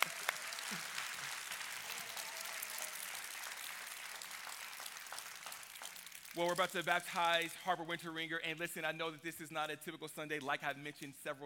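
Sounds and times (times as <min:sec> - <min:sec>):
audience applauding: 0:00.0 - 0:07.2
speech: 0:06.4 - 0:11.4.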